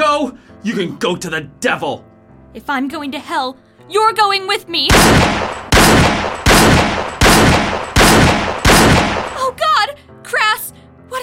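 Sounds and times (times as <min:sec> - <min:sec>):
speech: 0:00.2 - 0:05.6
gunshots: 0:04.9 - 0:09.4.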